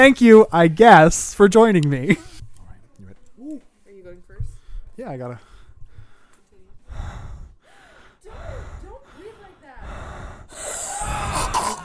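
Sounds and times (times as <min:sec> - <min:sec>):
speech: 0:00.0 - 0:02.3, 0:05.0 - 0:05.5
one person breathing heavily with voiced gasps and huffs: 0:04.5 - 0:11.8.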